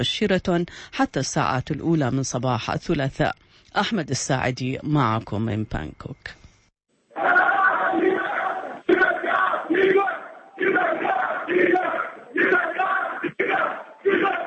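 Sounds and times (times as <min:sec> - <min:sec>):
speech: 0:00.0 - 0:06.4
Iraqi football fans chanting in Bangkok: 0:07.1 - 0:14.4.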